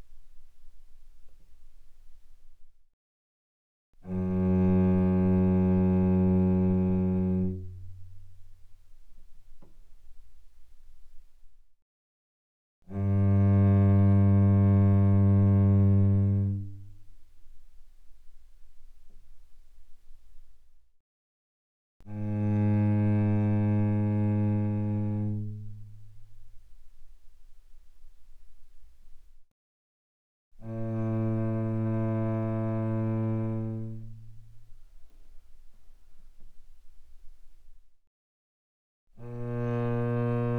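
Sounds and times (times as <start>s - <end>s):
cello arco mezzo-forte on C string: 4.0s - 11.3s, 12.9s - 20.5s, 22.0s - 29.3s, 30.6s - 37.7s, 39.2s - 40.5s.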